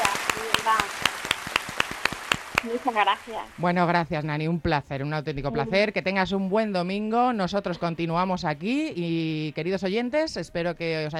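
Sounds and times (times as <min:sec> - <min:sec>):
person clapping to see off a guest on a Sunday talk show: 0:00.0 - 0:03.5
speech: 0:02.6 - 0:11.1.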